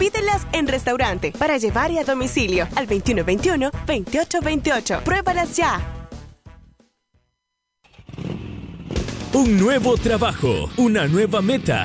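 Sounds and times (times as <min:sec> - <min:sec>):
speech: 0:00.0 - 0:06.0, 0:09.4 - 0:11.8
150cc motorcycle engine revving: 0:07.8 - 0:09.6.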